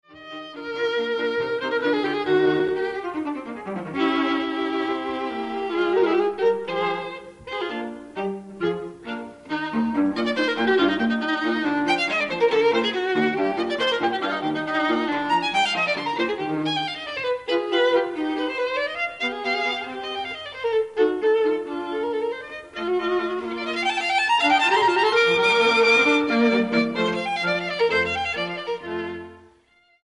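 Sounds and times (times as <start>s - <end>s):
string trio divertimento allegro in E-flat major: 0.2s - 29.7s.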